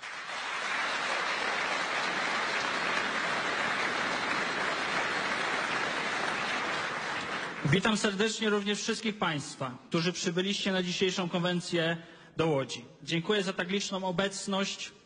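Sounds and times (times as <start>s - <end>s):
applause: 0.0s - 8.3s
speech: 7.6s - 15.0s.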